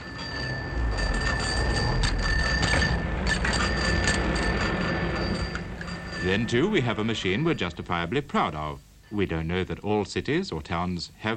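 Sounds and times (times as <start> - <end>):
many bicycle bells ringing: 0.0 - 7.7
speech: 6.2 - 11.3.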